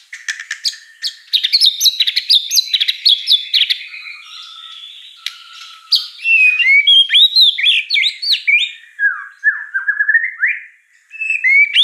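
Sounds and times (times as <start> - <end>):
white-rumped shama singing slurred warbled whistles: 0.6 - 11.8.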